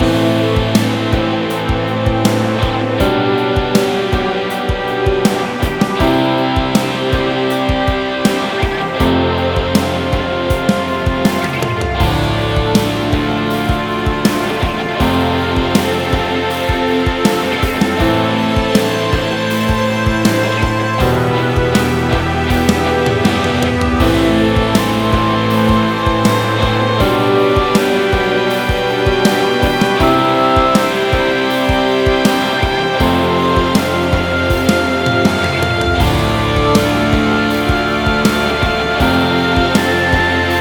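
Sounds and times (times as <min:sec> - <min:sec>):
dramatic huzun guitar music: 0:00.0 - 0:40.5.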